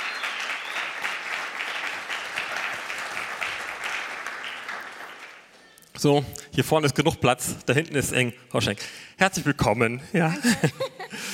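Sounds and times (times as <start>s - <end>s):
audience applause at a Christian gathering: 0.0s - 5.5s
speech: 6.0s - 11.0s
laughter: 10.2s - 11.3s.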